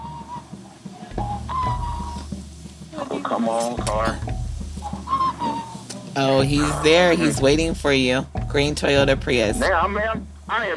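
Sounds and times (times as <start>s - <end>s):
man whistling nervously: 0.0s - 0.6s, 1.2s - 2.3s, 4.9s - 6.0s
speech: 3.3s - 4.3s, 6.2s - 10.7s.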